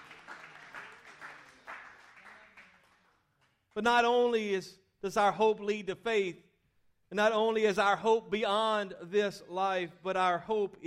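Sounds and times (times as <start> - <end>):
audience applause: 0.0 - 3.3
speech: 3.8 - 6.5, 7.1 - 10.8.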